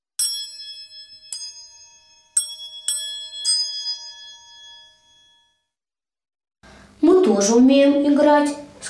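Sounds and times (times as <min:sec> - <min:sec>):
small cups ringing together: 0:00.2 - 0:05.7
speech: 0:07.3 - 0:08.6.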